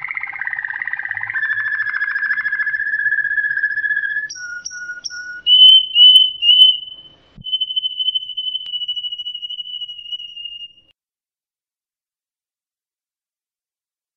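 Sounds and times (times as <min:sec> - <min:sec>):
Waterslager canary singing: 0:00.0 - 0:10.8.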